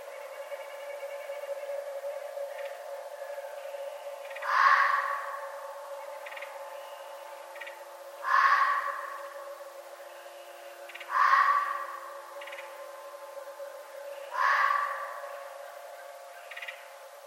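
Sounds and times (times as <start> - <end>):
red fox screaming: 4.4 - 5.6, 8.2 - 9.6, 11.0 - 12.6, 14.3 - 15.5.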